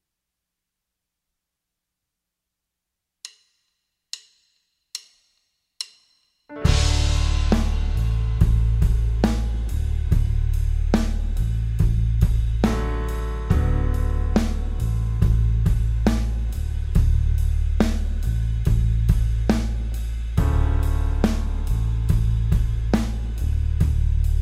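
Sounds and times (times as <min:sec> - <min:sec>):
music loop in D: 0:06.5 - 0:24.3.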